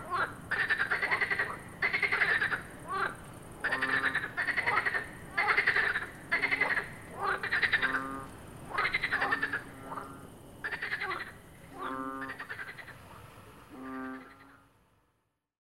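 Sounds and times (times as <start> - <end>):
frogs croaking in a chorus: 0.0 - 15.0.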